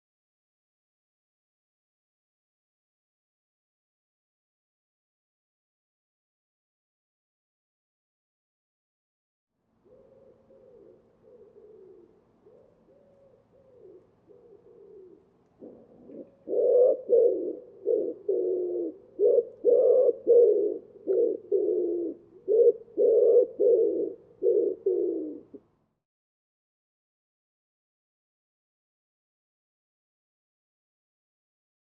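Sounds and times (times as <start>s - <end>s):
Common Wood Pigeon cooing: 9.8s - 25.6s
steady background hiss: 10.0s - 25.6s.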